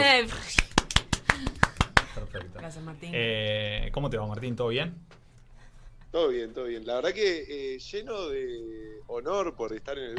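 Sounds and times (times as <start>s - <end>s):
speech: 0.2s - 0.4s, 2.4s - 5.2s, 6.1s - 10.1s
applause: 0.6s - 2.2s.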